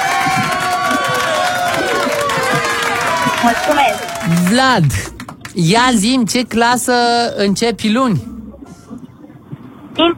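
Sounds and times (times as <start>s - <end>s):
audience applause: 0.0s - 5.9s
speech: 3.4s - 8.3s.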